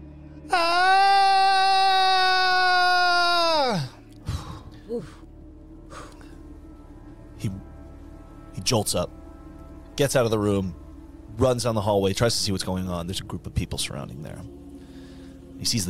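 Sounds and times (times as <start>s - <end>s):
speech: 0.5s - 0.8s, 8.7s - 9.1s, 10.0s - 10.8s, 11.4s - 14.6s, 15.6s - 15.8s
voice imitating a loud scream: 0.5s - 4.0s
breathy gasps: 4.2s - 5.2s.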